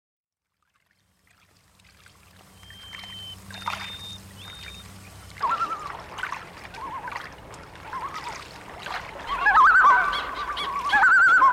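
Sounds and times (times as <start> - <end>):
loons giving tremolo calls on a lake: 2.5 - 8.4, 9.2 - 11.5.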